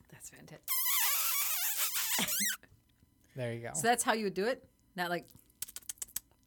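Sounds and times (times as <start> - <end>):
speech: 0.1 - 0.9, 2.2 - 2.8, 3.4 - 5.4
squeaks made by sucking air through pursed lips: 0.7 - 2.6.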